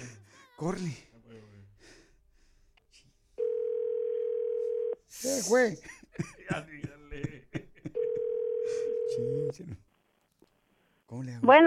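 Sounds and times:
speech: 0.6s - 1.1s, 5.2s - 7.4s, 9.2s - 9.9s, 11.1s - 11.6s
steady single-pitched telephone tone as a call rings through: 3.4s - 5.0s, 8.0s - 9.5s
laughter: 5.8s - 8.3s.

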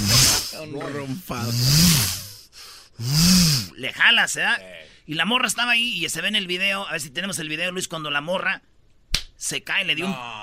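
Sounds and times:
voice imitating gym cable machine whirring: 0.0s - 2.3s, 3.0s - 3.8s
speech: 0.6s - 2.2s, 3.0s - 8.7s, 9.4s - 10.4s.

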